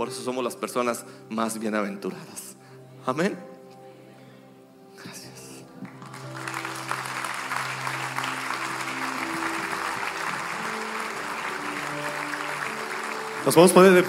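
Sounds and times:
speech: 0:00.0 - 0:03.5, 0:13.4 - 0:14.0
audience applauding: 0:05.8 - 0:14.0.

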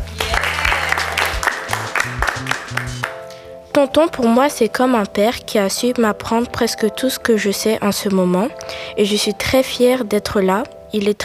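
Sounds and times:
applause: 0:00.0 - 0:03.2
speech: 0:03.8 - 0:11.2.

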